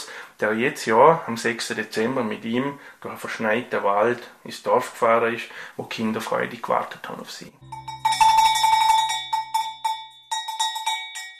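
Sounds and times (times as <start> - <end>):
speech: 0.4 - 8.0
Saint Nicholas's bells jingling: 7.6 - 11.3
steady ringing tone: 7.6 - 11.3.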